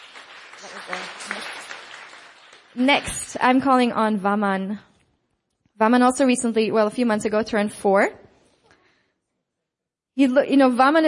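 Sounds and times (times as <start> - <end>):
audience applause: 0.0 - 3.2
speech: 0.7 - 1.4, 2.8 - 4.9, 5.8 - 8.2, 10.2 - 11.0.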